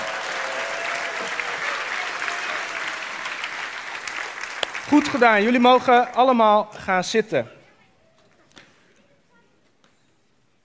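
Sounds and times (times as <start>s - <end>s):
audience applause: 0.0s - 6.2s
speech: 4.9s - 7.6s.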